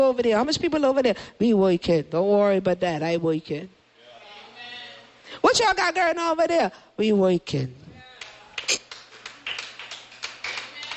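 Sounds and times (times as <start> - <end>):
speech: 0.0 - 3.8, 5.3 - 7.8
scattered soft clapping: 8.1 - 10.9.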